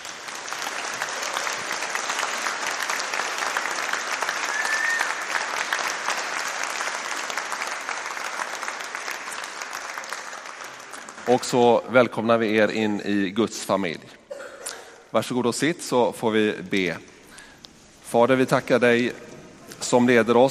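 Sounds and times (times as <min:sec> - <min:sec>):
audience applause: 0:00.0 - 0:11.8
speech: 0:11.3 - 0:14.2, 0:15.1 - 0:17.1, 0:18.1 - 0:20.4.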